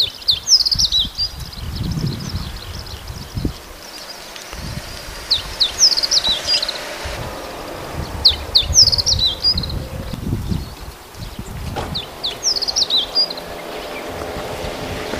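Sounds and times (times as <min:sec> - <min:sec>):
Meadow bunting hojiro birds calling: 0:00.0 - 0:15.1.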